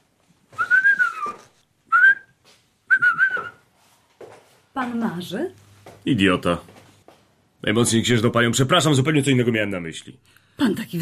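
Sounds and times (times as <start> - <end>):
man whistling: 0.5 - 3.7
speech: 4.8 - 6.7, 7.6 - 10.9.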